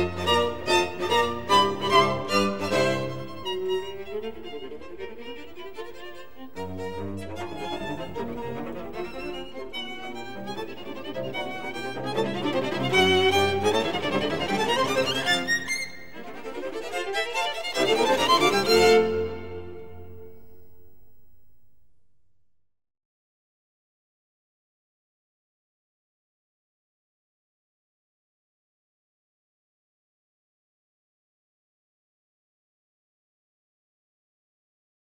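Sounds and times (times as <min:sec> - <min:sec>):
string quartet in F minor: 0:00.0 - 0:20.3.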